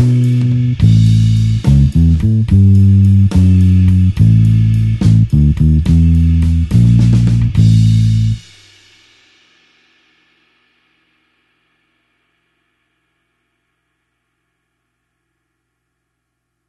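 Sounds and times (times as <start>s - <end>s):
slow blues bassline in A: 0.0s - 8.4s.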